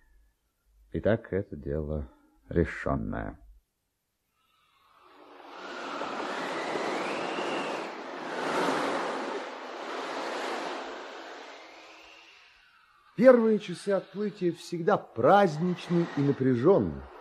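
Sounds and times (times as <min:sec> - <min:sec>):
speech: 0:00.9 - 0:03.4, 0:13.2 - 0:17.1
wind hissing over sea waves: 0:04.5 - 0:17.1
sea waves rushing: 0:05.4 - 0:12.5, 0:15.4 - 0:17.1.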